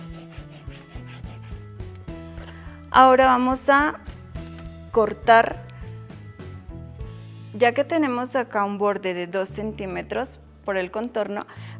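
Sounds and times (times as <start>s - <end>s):
squeaky rubbing as a paper figure is glued and pressed onto cardstock: 0.0s - 1.8s
speech: 2.9s - 4.0s, 5.0s - 5.7s, 7.6s - 11.7s.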